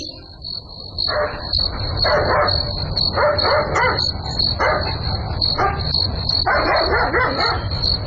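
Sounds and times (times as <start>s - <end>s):
dog barking at night: 1.1s - 8.0s.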